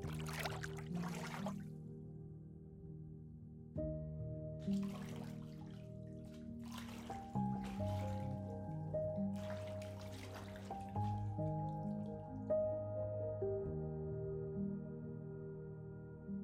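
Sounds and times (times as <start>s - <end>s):
bathtub water splashing and trickling: 0.0s - 1.7s, 4.6s - 12.4s
soft low musical tones: 0.0s - 16.4s.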